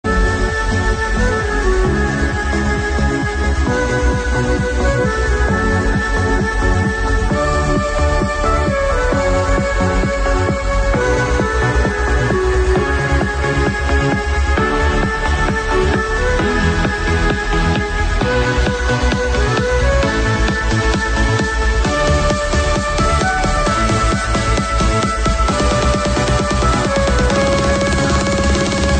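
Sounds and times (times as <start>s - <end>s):
clarinet trance music: 0.0s - 28.9s.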